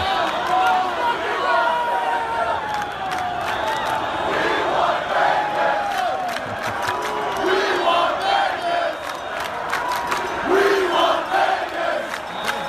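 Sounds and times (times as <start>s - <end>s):
crowd noise outside Capital One Arena: 0.0s - 12.6s.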